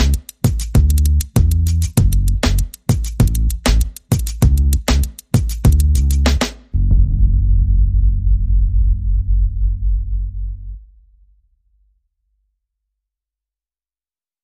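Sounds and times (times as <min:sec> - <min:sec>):
percussion: 0:00.0 - 0:08.0
bass: 0:00.0 - 0:11.0.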